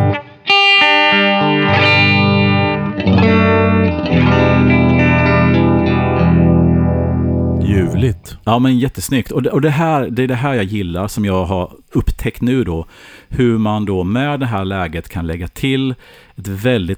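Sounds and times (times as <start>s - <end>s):
distorted electric guitar chords through a phaser pedal in 45 setting: 0.0s - 8.2s
speech: 8.5s - 16.9s.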